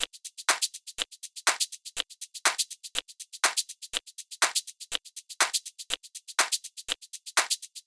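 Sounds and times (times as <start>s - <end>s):
122 BPM percussion loop: 0.0s - 7.8s.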